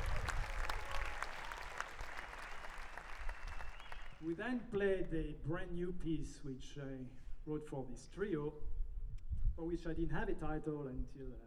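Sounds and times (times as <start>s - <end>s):
audience applauding: 0.0s - 4.3s
speech: 4.2s - 8.8s, 9.6s - 11.4s.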